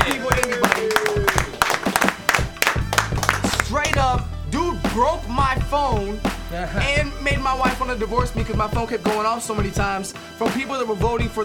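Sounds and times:
hand claps: 0:00.0 - 0:04.2
speech: 0:05.0 - 0:11.4.

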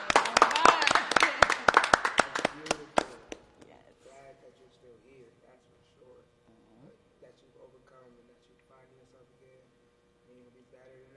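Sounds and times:
clapping: 0:00.0 - 0:03.4.

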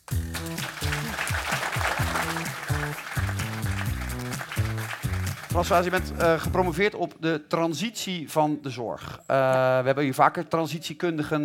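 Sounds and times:
audience applause: 0:00.0 - 0:06.4
speech: 0:05.6 - 0:11.4.

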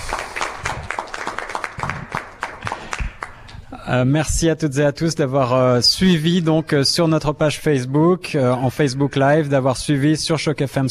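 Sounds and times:
applause: 0:00.0 - 0:03.6
speech: 0:03.9 - 0:10.8.

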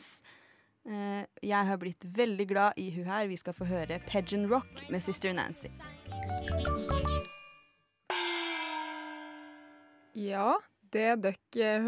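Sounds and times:
speech: 0:00.8 - 0:07.2, 0:10.2 - 0:11.8
short bell-like theme tune melody: 0:07.0 - 0:10.1.

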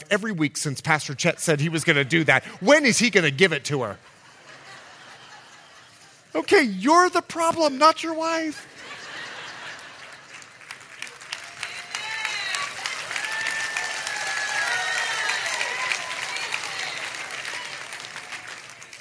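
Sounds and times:
speech: 0:00.0 - 0:04.1, 0:06.3 - 0:08.8
laughter: 0:01.9 - 0:06.3, 0:08.2 - 0:10.7
audience applause: 0:09.4 - 0:19.0.

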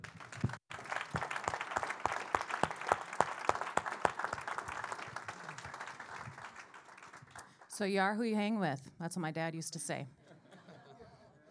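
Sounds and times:
crowd applauding: 0:00.0 - 0:07.7
speech: 0:07.8 - 0:10.2
laughter: 0:10.2 - 0:11.4.

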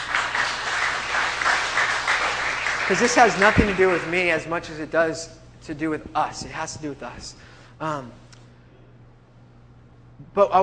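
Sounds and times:
audience applause: 0:00.0 - 0:04.4
speech: 0:02.9 - 0:08.2, 0:10.4 - 0:10.6.

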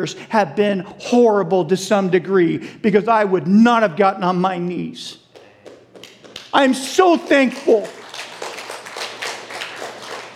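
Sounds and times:
speech: 0:00.0 - 0:05.2, 0:06.5 - 0:08.0
audience clapping: 0:05.3 - 0:10.3.

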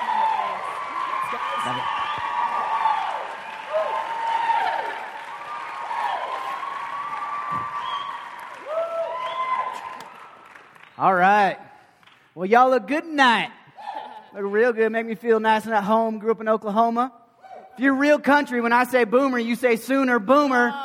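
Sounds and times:
crowd whooping and whistling: 0:00.0 - 0:10.6
audience clapping to welcome two guest pastors: 0:00.0 - 0:12.4
speech: 0:01.3 - 0:02.1, 0:12.4 - 0:13.6, 0:14.4 - 0:17.2, 0:17.8 - 0:20.8.

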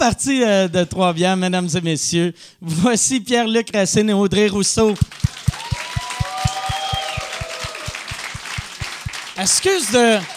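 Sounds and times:
speech: 0:00.0 - 0:05.4, 0:09.4 - 0:10.3
fast thumping beat: 0:05.0 - 0:09.2
audience applause: 0:05.0 - 0:10.3.

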